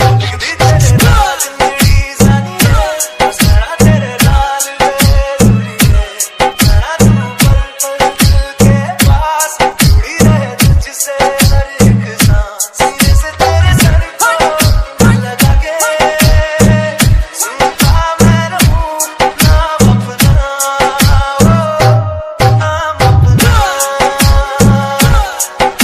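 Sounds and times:
Bollywood DJ mix ringtone: 0.0s - 25.8s.

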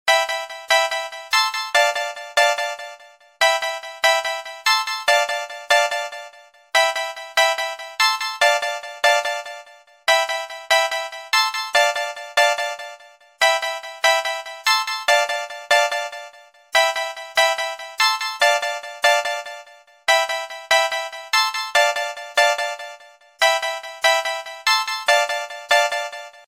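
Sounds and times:
ringtone: 0.1s - 26.4s.

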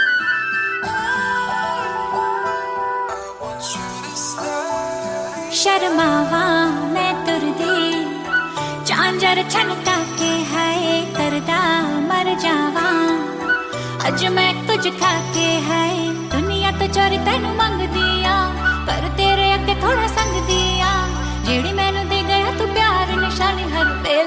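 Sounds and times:
Hindi ringtone: 0.0s - 11.8s, 12.4s - 24.1s.

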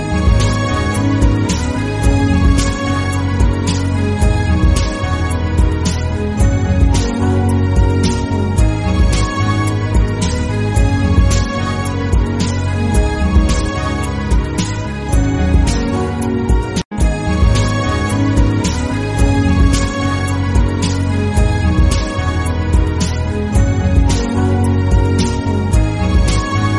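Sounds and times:
romantic Bollywood ringtone music: 0.0s - 26.7s.

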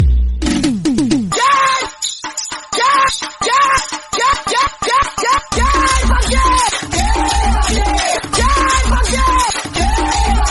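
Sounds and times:
funny ringtone music: 0.6s - 10.4s.

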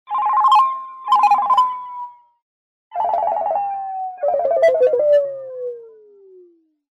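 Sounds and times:
funny incoming SMS ringtone: 0.1s - 2.3s, 2.9s - 5.0s.

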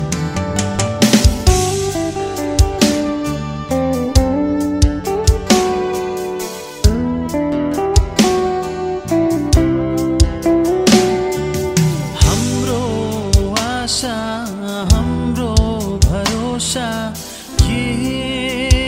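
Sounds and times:
Nepali Christian gospel music: 0.0s - 18.8s.

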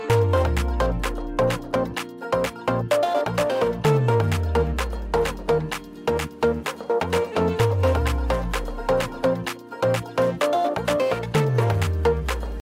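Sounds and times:
Bollywood music ringtone: 0.0s - 12.5s.

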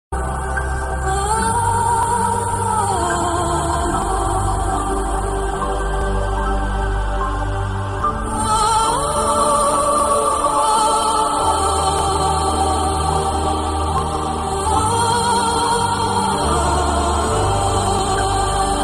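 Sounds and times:
angel melody ringtone: 0.2s - 18.8s.

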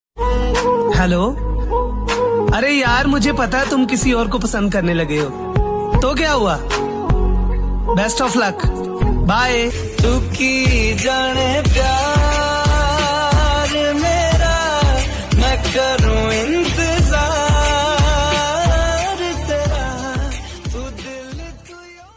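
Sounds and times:
Bollywood music ringtone: 0.2s - 22.1s.

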